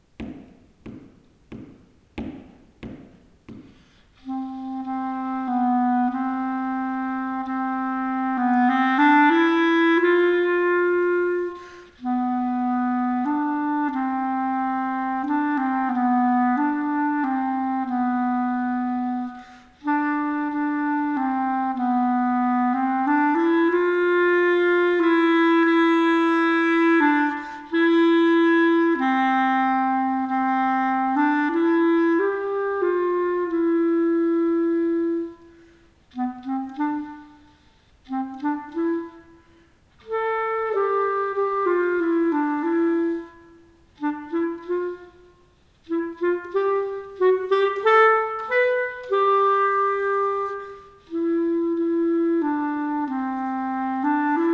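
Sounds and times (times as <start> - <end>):
waltz duet: 0.1 - 54.5.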